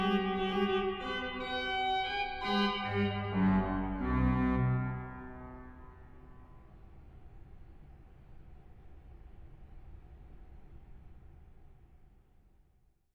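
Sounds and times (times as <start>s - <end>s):
organist playing an allegro scherzando: 0.0s - 5.9s.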